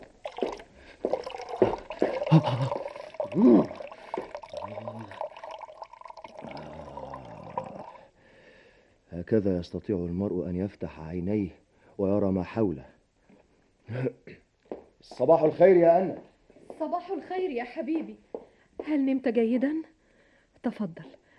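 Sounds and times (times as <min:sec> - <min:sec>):
tap water running over someone's head: 0:00.2 - 0:08.0
speech: 0:02.3 - 0:03.8, 0:09.3 - 0:12.9, 0:13.9 - 0:14.3, 0:15.1 - 0:16.3, 0:17.1 - 0:18.3, 0:18.9 - 0:19.9, 0:20.7 - 0:21.1.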